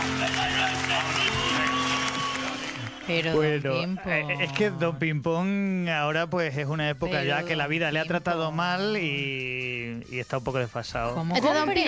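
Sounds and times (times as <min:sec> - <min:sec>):
crowd applauding: 0:00.0 - 0:04.8
speech: 0:03.1 - 0:11.8.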